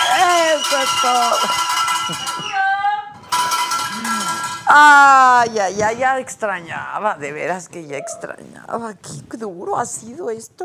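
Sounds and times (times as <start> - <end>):
garbage collector's hand bell ringing: 0.0 - 2.6, 3.3 - 4.8
speech: 0.8 - 2.2, 4.7 - 10.6.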